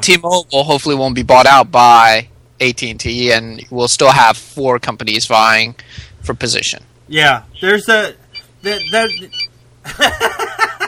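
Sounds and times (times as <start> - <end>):
speech: 0.0 - 10.7
low steady hum: 0.0 - 10.8
telephone ringing during a talk show: 7.6 - 9.6
laughter: 9.8 - 10.8.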